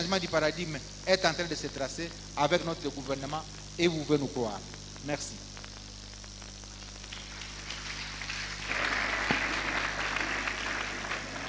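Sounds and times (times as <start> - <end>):
speech: 0.1 - 5.5
audience applause: 7.1 - 11.4.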